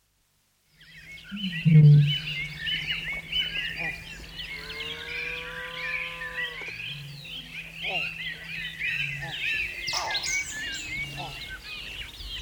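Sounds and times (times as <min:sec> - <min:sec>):
Australasian bittern calling: 0:01.1 - 0:12.4.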